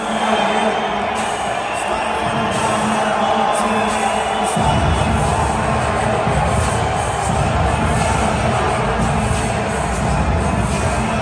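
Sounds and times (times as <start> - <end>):
stadium crowd cheering as team enters: 0.0 - 11.2.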